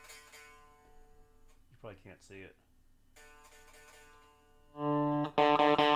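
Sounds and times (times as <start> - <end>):
buzzing open D string on guitar: 0.0 - 1.5, 3.1 - 5.9
speech: 1.8 - 2.7.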